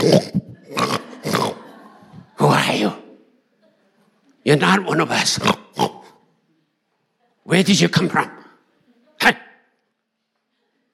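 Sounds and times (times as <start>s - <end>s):
speech: 0.0s - 0.4s, 4.5s - 6.0s, 7.5s - 8.4s
voice imitating a pig grunting: 0.0s - 1.7s, 5.2s - 6.3s
laughter: 0.0s - 4.7s.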